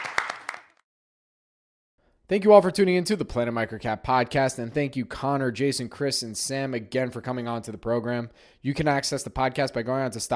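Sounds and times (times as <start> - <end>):
audience clapping: 0.0 - 0.8
speech: 2.3 - 10.3.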